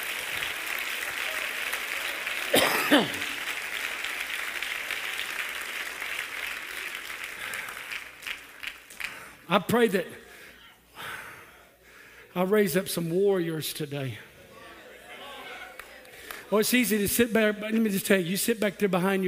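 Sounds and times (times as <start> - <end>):
audience clapping hands: 0.0 - 9.5, 15.6 - 17.0
speech: 2.9 - 3.2, 9.5 - 10.2, 12.4 - 14.3, 16.5 - 19.2.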